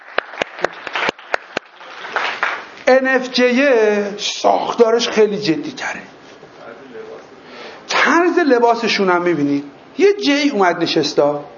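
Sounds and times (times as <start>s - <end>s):
small audience applauding two participants: 0.0s - 2.8s
speech: 2.9s - 6.1s, 8.4s - 11.5s.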